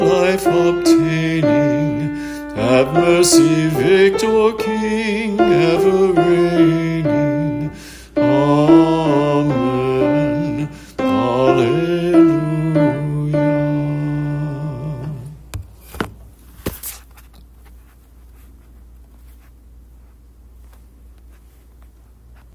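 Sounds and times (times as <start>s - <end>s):
liturgical chant: 0.0s - 15.4s.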